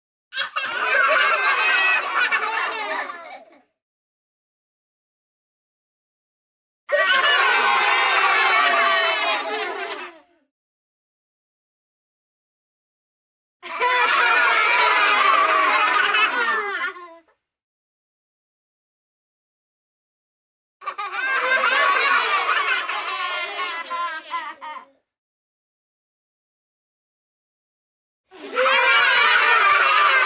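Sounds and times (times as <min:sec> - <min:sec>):
children laughing merrily: 0:00.4 - 0:03.7, 0:06.9 - 0:10.4, 0:13.6 - 0:17.3, 0:20.8 - 0:25.0, 0:28.4 - 0:30.2.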